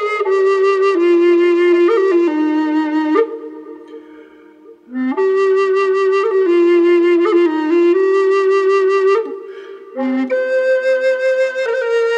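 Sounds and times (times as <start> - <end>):
wet bass flute in C with bird's eye maple inlay: 0.0 - 3.9, 4.6 - 12.1.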